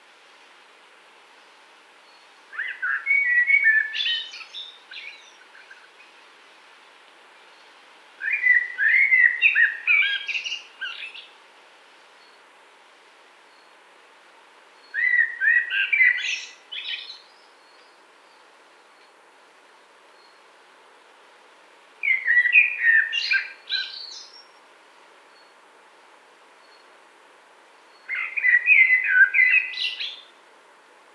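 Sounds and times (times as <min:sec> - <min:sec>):
Eurasian blackbird song phrases: 0:02.0 - 0:11.4, 0:14.8 - 0:19.2, 0:22.0 - 0:24.7, 0:26.6 - 0:27.0, 0:27.8 - 0:30.4.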